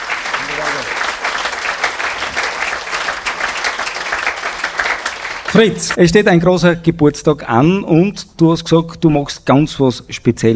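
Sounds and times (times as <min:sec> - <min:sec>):
crowd applause: 0:00.0 - 0:06.0
speech: 0:05.5 - 0:10.5.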